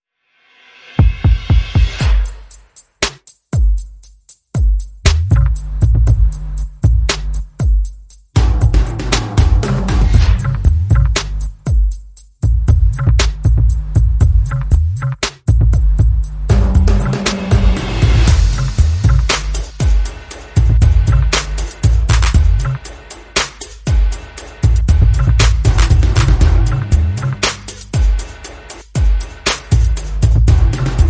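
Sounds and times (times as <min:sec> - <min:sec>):
percussion: 0:00.3 - 0:31.0.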